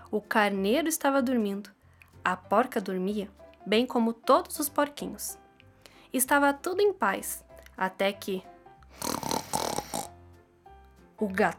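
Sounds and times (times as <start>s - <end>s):
speech: 0.1s - 5.4s, 6.1s - 9.2s, 11.2s - 11.5s
loud snoring: 8.8s - 10.2s.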